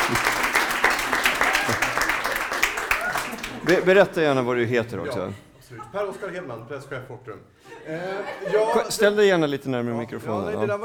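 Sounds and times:
audience applause: 0:00.0 - 0:04.2
laughter: 0:00.0 - 0:09.2
speech: 0:03.7 - 0:10.8.

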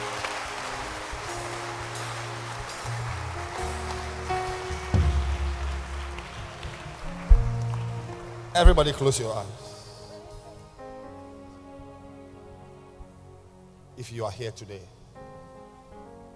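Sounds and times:
audience clapping hands: 0:00.0 - 0:09.6
speech: 0:08.6 - 0:09.7, 0:14.0 - 0:15.0.

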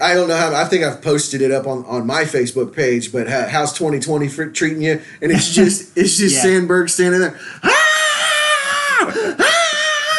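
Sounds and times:
speech: 0:00.0 - 0:07.9
person screaming in a show clip: 0:07.6 - 0:10.1.

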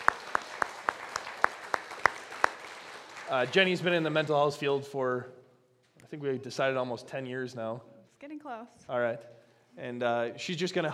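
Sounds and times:
round of applause: 0:00.0 - 0:04.9
speech: 0:03.3 - 0:05.4, 0:06.1 - 0:10.9.

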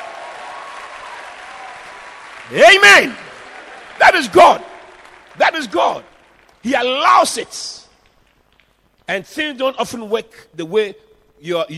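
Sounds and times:
crowd clapping steadily: 0:00.0 - 0:09.0
speech: 0:02.5 - 0:03.2, 0:04.0 - 0:04.7, 0:05.4 - 0:07.8, 0:09.1 - 0:11.7.

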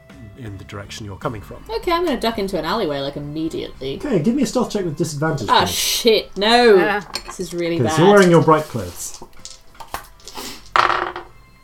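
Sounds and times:
speech: 0:00.1 - 0:09.4
dice rattling and clattering across a hard surface: 0:06.4 - 0:11.4.

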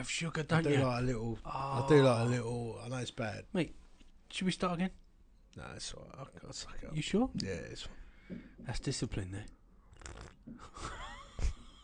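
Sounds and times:
speech: 0:00.0 - 0:11.2
slurping hot tea: 0:09.9 - 0:10.4.

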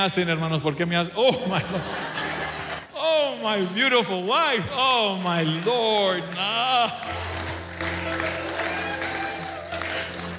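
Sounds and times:
speech: 0:00.0 - 0:02.4, 0:03.2 - 0:07.3
laughter: 0:01.2 - 0:04.2
audience cheering and shouting: 0:03.0 - 0:10.3.

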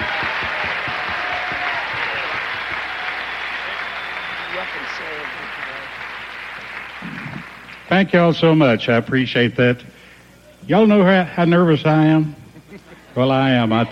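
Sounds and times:
faint voices and cheers: 0:00.0 - 0:06.0
crowd applause: 0:00.0 - 0:08.0
speech: 0:07.9 - 0:10.0, 0:10.7 - 0:12.4, 0:13.2 - 0:13.9.

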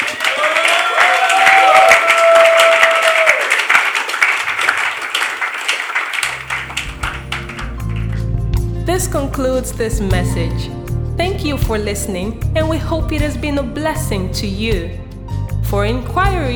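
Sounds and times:
audience applauding in praise: 0:00.0 - 0:08.3
speech: 0:09.4 - 0:15.0, 0:15.7 - 0:16.5.

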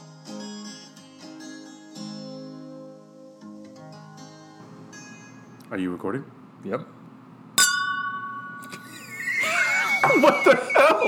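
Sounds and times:
speech: 0:05.7 - 0:07.0, 0:10.1 - 0:11.0
filled glass ringing ding: 0:07.6 - 0:09.9
laughter: 0:08.8 - 0:11.0.

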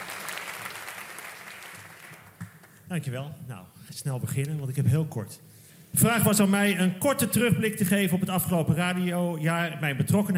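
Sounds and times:
live audience applause: 0:00.0 - 0:02.7
speech: 0:02.9 - 0:10.3.

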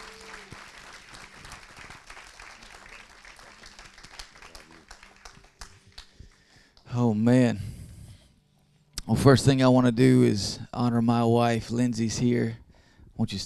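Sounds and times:
house church congregation clapping welcoming a speaker: 0:00.0 - 0:06.8
speech: 0:07.0 - 0:07.6, 0:09.1 - 0:12.6, 0:13.2 - 0:13.4.

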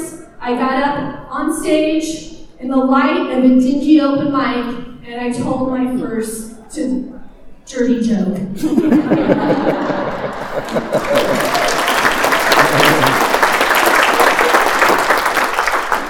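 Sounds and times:
speech: 0:00.4 - 0:07.1, 0:07.7 - 0:11.4
scattered laughter and chatter: 0:08.6 - 0:13.3
audience applause: 0:09.2 - 0:16.0.

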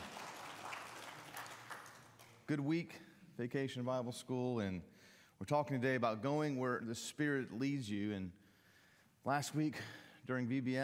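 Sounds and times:
audience applause: 0:00.0 - 0:02.4
speech: 0:02.5 - 0:08.4, 0:09.2 - 0:10.8.

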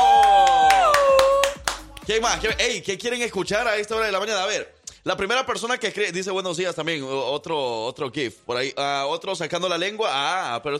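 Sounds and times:
hand claps: 0:00.0 - 0:02.4
speech: 0:02.1 - 0:10.7.

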